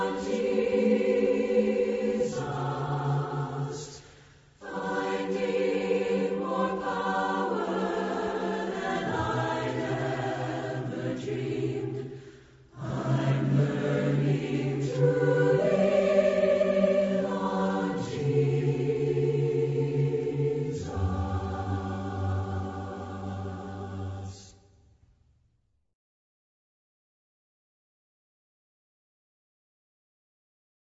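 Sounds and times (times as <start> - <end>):
a cappella hymn singing: 0.0 - 24.6.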